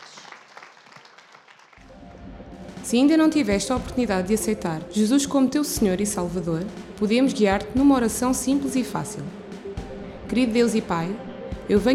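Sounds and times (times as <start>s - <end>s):
audience applauding: 0.0s - 1.9s
speech: 2.9s - 9.4s, 10.3s - 11.9s.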